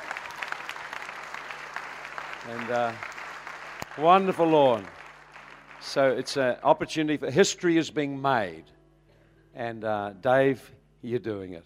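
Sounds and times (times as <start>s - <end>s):
audience applause: 0.0s - 6.3s
speech: 2.4s - 3.2s, 4.0s - 5.0s, 5.8s - 8.8s, 9.5s - 11.6s.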